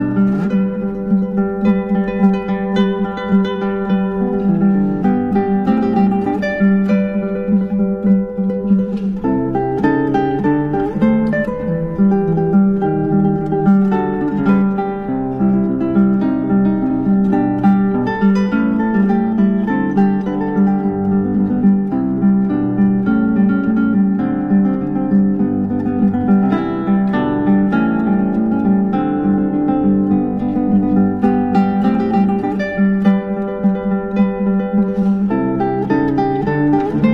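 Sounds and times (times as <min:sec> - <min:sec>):
guitar: 0:00.0 - 0:37.1.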